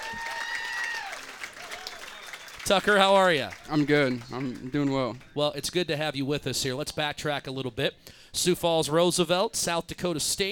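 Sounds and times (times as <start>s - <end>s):
round of applause: 0.0s - 5.4s
speech: 2.6s - 10.4s.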